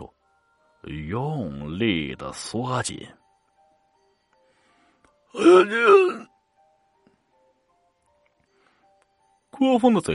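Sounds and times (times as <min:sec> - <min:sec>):
speech: 0:00.8 - 0:03.2, 0:05.3 - 0:06.3, 0:09.6 - 0:10.1
agonized scream: 0:05.4 - 0:06.2.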